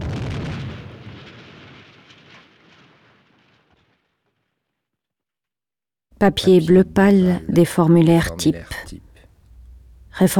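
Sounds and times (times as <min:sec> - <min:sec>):
distant artillery ranging fire: 0:00.0 - 0:04.9
speech: 0:06.2 - 0:09.1, 0:10.2 - 0:10.3.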